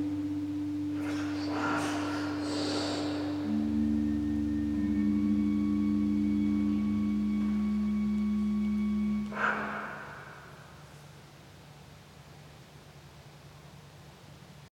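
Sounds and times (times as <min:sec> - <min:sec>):
improvised music: 0:00.0 - 0:10.4.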